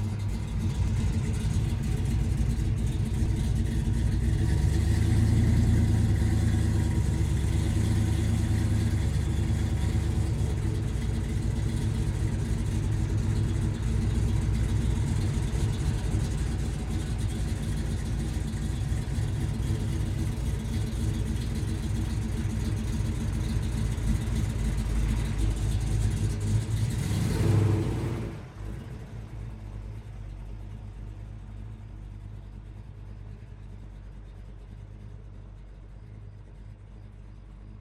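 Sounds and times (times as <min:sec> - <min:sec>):
vehicle sharp start and pulling away: 0:00.0 - 0:30.0.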